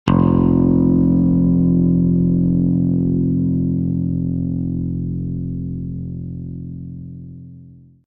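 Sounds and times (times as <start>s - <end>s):
F bass note on a guitar string: 0.1s - 8.0s.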